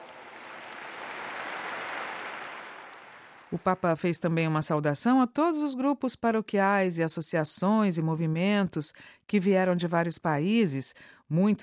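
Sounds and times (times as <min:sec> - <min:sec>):
audience applause: 0:00.0 - 0:03.6
speech: 0:03.5 - 0:11.6.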